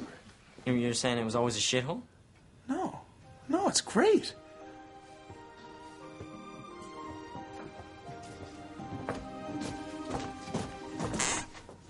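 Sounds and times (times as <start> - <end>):
speech: 0.7 - 2.1, 3.7 - 4.4
stair squeaking: 6.2 - 11.8.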